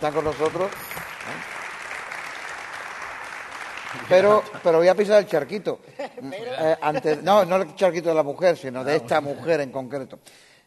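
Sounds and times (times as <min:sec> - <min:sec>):
speech: 0:00.0 - 0:01.6, 0:03.9 - 0:10.5
applause: 0:00.0 - 0:05.2.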